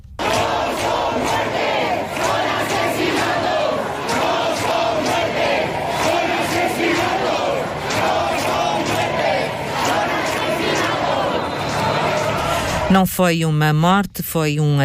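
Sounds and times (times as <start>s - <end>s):
large protest crowd chanting a slogan in unison: 0.2s - 12.9s
speech: 12.9s - 14.8s.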